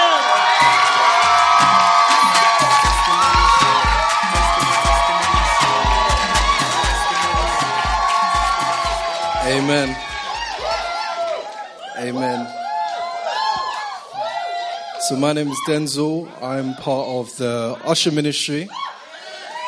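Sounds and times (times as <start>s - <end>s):
audience clapping: 0.1s - 14.1s
speech: 9.7s - 10.0s, 15.1s - 18.9s.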